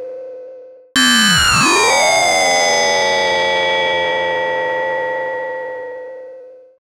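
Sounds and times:
Yamaha CS40M synthesizer effects: 1.0s - 6.4s.

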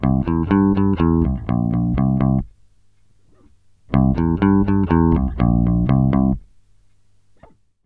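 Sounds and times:
bass groove: 0.0s - 2.5s, 3.9s - 6.5s.

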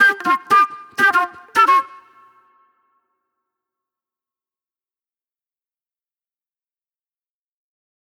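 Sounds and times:
old soul flute music: 0.0s - 3.0s.

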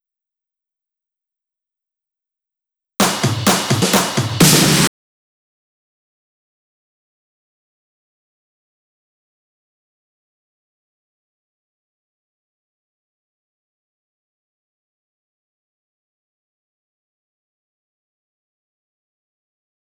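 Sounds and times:
drum and percussion fills at 128 BPM: 3.0s - 4.9s.

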